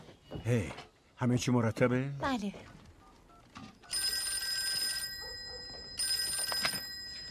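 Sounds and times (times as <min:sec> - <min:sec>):
speech: 0:00.4 - 0:02.7
telephone bell ringing in the Wheeler home: 0:03.8 - 0:07.2.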